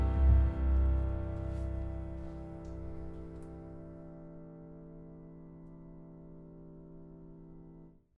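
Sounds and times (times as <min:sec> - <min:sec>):
waltz music: 0:00.0 - 0:04.1.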